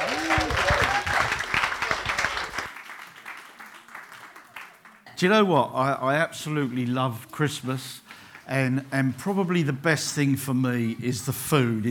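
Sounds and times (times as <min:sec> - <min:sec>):
audience applause welcoming a church leader as guest speaker: 0:00.0 - 0:05.1
speech: 0:05.2 - 0:11.8.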